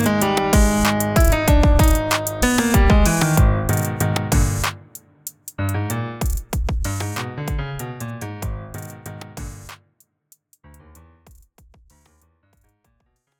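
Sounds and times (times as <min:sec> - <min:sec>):
piano riff: 0:00.0 - 0:09.8
trap drums: 0:00.0 - 0:10.6.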